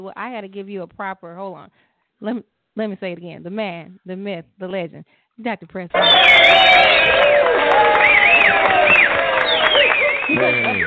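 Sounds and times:
speech: 0:00.0 - 0:10.8
cheering: 0:05.9 - 0:10.8
applause: 0:06.0 - 0:10.8.

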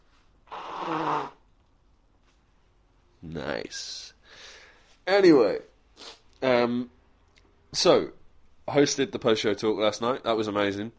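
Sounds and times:
person blowing nose: 0:00.4 - 0:01.4, 0:06.0 - 0:06.2
speech: 0:03.3 - 0:04.4, 0:05.1 - 0:07.0, 0:07.7 - 0:10.9.

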